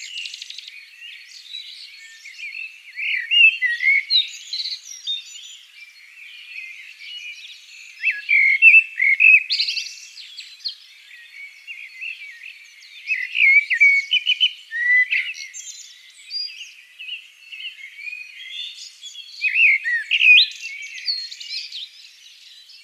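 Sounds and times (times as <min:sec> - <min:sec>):
common blackbird singing: 0:00.0 - 0:22.8.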